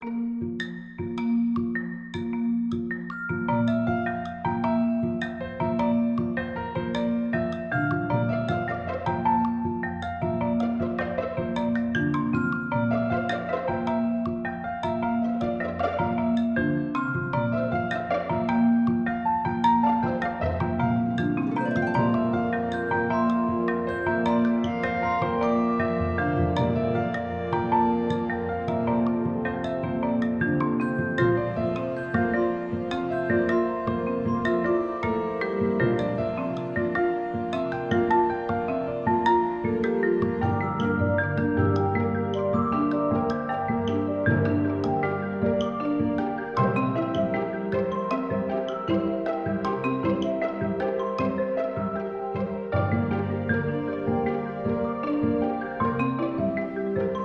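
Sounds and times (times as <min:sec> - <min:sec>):
music: 0:00.0 - 0:57.2.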